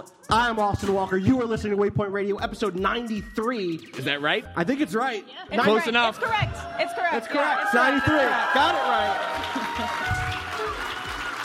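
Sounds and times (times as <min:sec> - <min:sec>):
speech: 0:00.0 - 0:10.2
audience clapping at the Sphinx Theater: 0:08.1 - 0:11.4.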